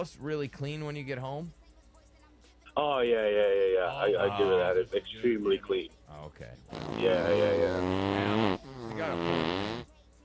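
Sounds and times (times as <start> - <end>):
speech: 0.0 - 1.6, 2.8 - 9.7
drawn-out buzzing fart: 6.7 - 9.9.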